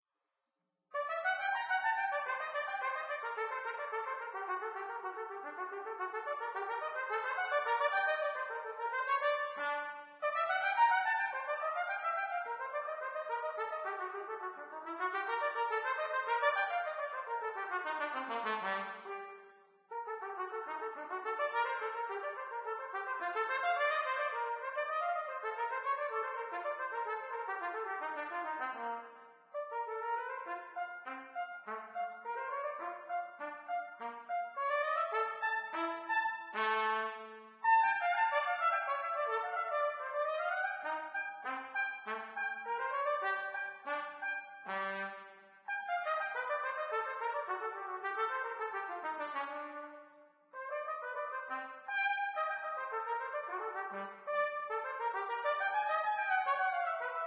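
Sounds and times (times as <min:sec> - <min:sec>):
trumpet: 0:00.9 - 0:57.2.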